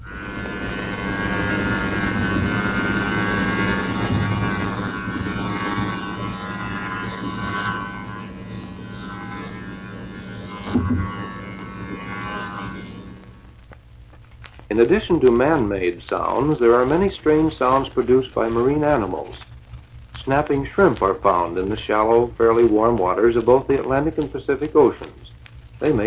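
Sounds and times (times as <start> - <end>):
Foxer towed anti-torpedo decoy loud buzzing: 0.0 - 26.0
knock: 10.8 - 11.1
speech: 14.8 - 19.5, 20.2 - 26.0.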